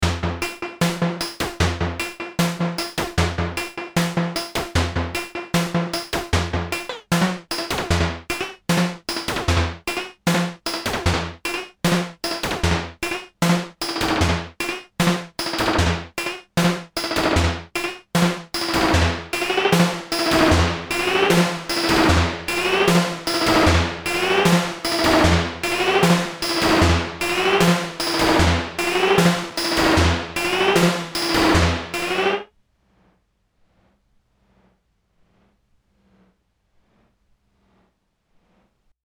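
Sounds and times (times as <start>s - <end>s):
Moog synthesizer CV speed modulation feedback: 0.0s - 16.0s, 17.4s - 32.4s.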